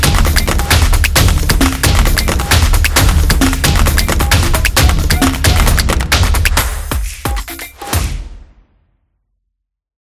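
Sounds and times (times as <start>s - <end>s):
hand percussion: 0.0s - 8.0s.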